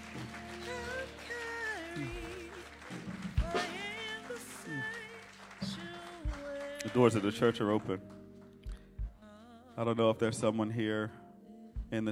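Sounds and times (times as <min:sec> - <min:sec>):
crowd clapping in praise: 0:00.0 - 0:08.8
organ-like music: 0:00.0 - 0:09.2
speech: 0:06.8 - 0:08.2, 0:09.8 - 0:11.2, 0:11.9 - 0:12.1.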